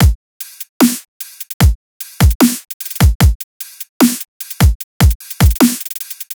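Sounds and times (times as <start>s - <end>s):
dubstep drum loop: 0.0s - 6.3s.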